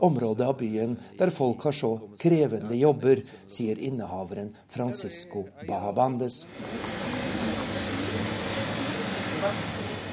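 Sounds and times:
speech: 0:00.0 - 0:07.2, 0:09.4 - 0:09.7
refrigerated display counter running full out in the El Refugio shop in Santiago, Chile: 0:06.4 - 0:10.1.

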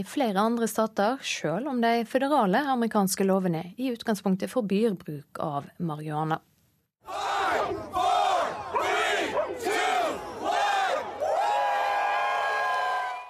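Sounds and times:
speech: 0:00.0 - 0:06.5, 0:07.1 - 0:08.1
large crowd on a bridge shouting in unison: 0:07.0 - 0:13.2.

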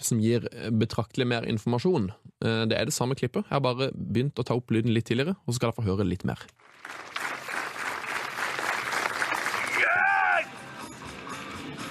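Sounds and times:
speech: 0:00.0 - 0:07.1
applause: 0:06.6 - 0:10.4.

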